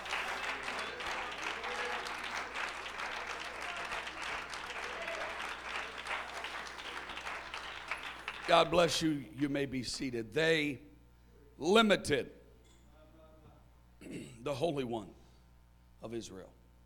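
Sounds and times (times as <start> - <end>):
audience shouting: 0.0 - 6.8
audience clapping hands: 0.0 - 9.0
speech: 8.5 - 10.9, 11.6 - 12.4, 14.4 - 15.2, 16.0 - 16.6.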